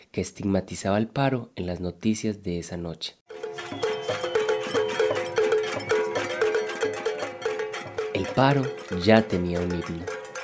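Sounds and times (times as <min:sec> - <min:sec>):
speech: 0:00.2 - 0:03.9, 0:08.2 - 0:10.2
protesters banging pots and pans in a cacerolazo: 0:03.3 - 0:10.4.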